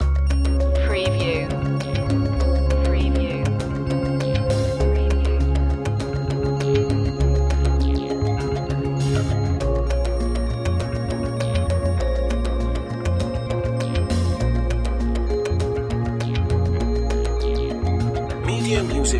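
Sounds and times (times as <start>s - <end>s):
building up music loop: 0.0s - 19.1s.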